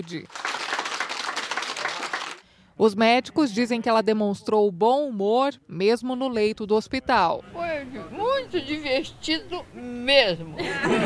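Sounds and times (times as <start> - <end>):
speech: 0.0 - 0.5, 2.8 - 11.0
health workers applauding a discharged patient: 0.0 - 2.4
laughter: 10.6 - 11.0.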